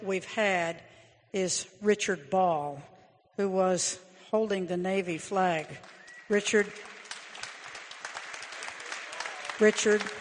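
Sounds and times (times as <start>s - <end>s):
speech: 0.0s - 6.9s, 9.6s - 10.2s
audience applause: 5.9s - 10.2s.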